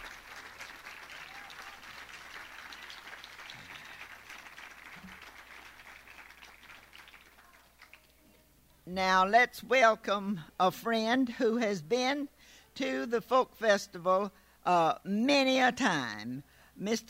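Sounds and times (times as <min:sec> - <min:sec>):
audience applause at a folk festival: 0:00.0 - 0:08.1
speech: 0:08.9 - 0:17.0.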